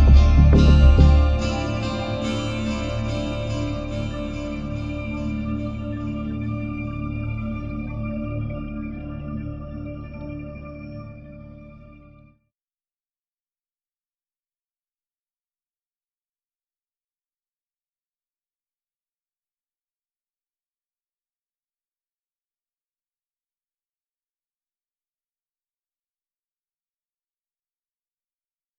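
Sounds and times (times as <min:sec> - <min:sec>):
dark ambient film music: 0:00.0 - 0:12.3.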